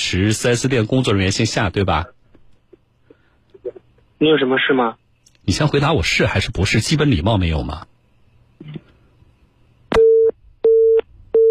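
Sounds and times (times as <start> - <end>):
faint low hum: 0.0 - 11.4
speech: 0.1 - 2.2, 4.2 - 7.9
telephone tone beeps: 10.0 - 11.4.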